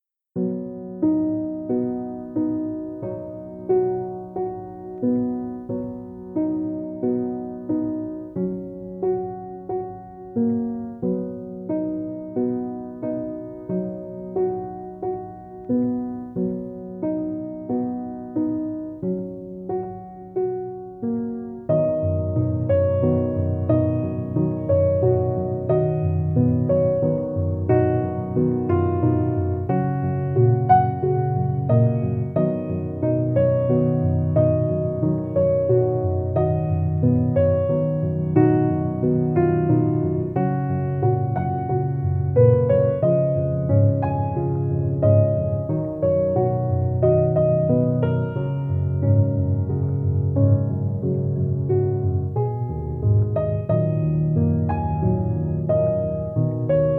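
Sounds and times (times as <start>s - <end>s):
piano: 0.0s - 56.9s.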